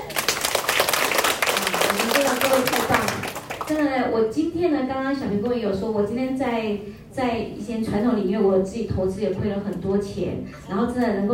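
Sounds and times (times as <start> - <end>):
warm applause from audience: 0.0 - 3.8
speech: 3.7 - 11.3.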